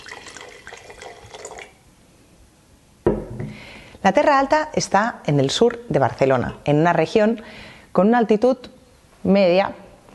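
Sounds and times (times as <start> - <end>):
white Garnacha wine from Terra Alta pouring into a glass: 0.0 - 1.8
speech: 4.0 - 9.8.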